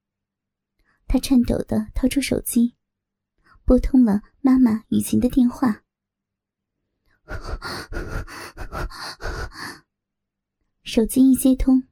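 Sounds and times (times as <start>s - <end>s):
speech: 1.1s - 2.8s, 3.7s - 5.8s, 7.3s - 9.0s, 10.9s - 11.9s
woman's rapid panting: 7.2s - 9.9s.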